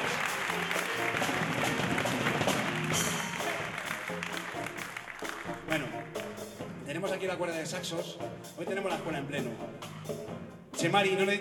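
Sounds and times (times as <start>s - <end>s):
audience applause: 0.0s - 6.4s
speech: 7.1s - 11.3s.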